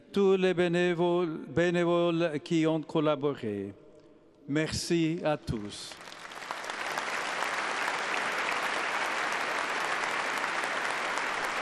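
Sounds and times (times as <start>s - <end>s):
speech: 0.2s - 3.8s, 4.5s - 6.1s
audience applauding in church: 5.9s - 11.6s.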